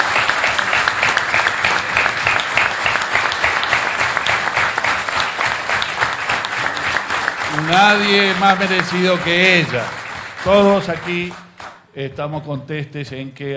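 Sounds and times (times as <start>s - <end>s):
audience applause: 0.0s - 11.8s
speech: 7.7s - 11.4s, 12.0s - 13.5s.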